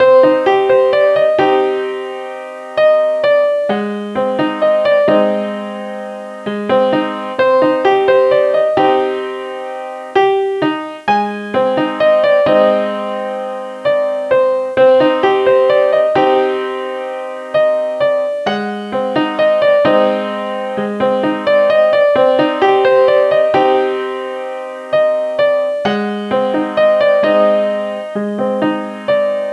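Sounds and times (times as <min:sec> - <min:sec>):
piano: 0:00.0 - 0:29.5.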